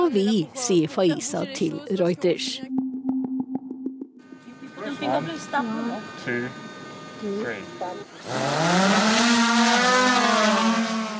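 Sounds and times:
speech: 0:00.0 - 0:02.8, 0:04.9 - 0:10.8
small drone buzzing over treetops and mountains in Vanuatu: 0:04.2 - 0:11.1.

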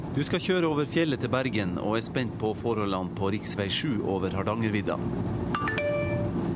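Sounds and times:
speech: 0:00.2 - 0:05.5
phone text message alert chime with three bell-like tones: 0:05.6 - 0:06.4.

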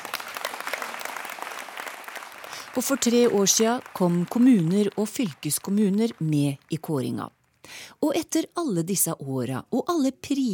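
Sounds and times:
audience applause: 0:00.0 - 0:06.6
speech: 0:02.8 - 0:10.5.

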